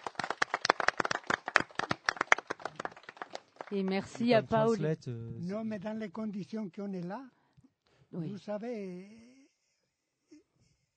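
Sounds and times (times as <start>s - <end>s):
audience applauding: 0.0s - 4.7s
speech: 3.7s - 7.4s, 8.1s - 9.3s.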